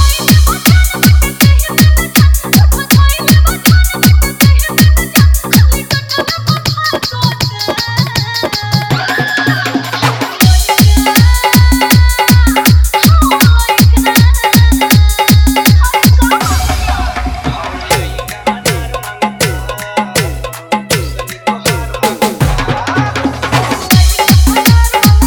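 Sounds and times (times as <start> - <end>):
Bhojpuri dance mix with dholak and bass: 0.0 - 25.2.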